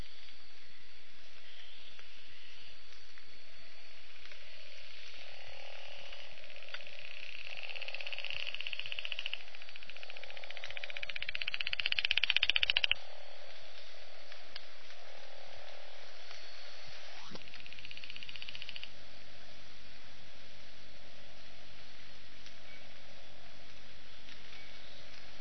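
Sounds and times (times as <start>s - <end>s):
Guenther's robber frog Ischnocnema guentheri call: 0.0s - 14.2s, 14.9s - 19.0s.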